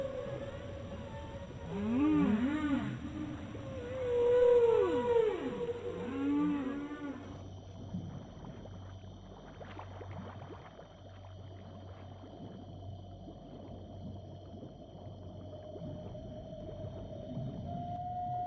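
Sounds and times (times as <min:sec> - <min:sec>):
whale calls in the ocean: 0:00.0 - 0:07.5, 0:15.8 - 0:18.4.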